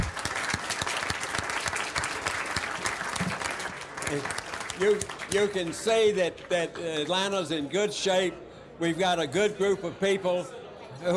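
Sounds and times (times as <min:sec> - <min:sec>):
audience applause: 0:00.0 - 0:06.2
speech: 0:04.1 - 0:11.1.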